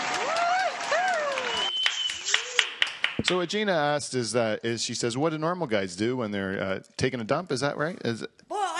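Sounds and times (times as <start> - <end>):
whoops of cheering: 0.0 - 2.8
audience applause: 0.0 - 3.4
speech: 3.2 - 8.6.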